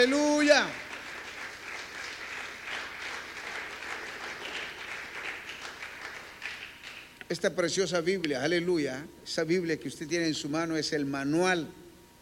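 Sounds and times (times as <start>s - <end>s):
speech: 0.0s - 0.9s, 7.3s - 11.8s
applause: 0.0s - 7.2s.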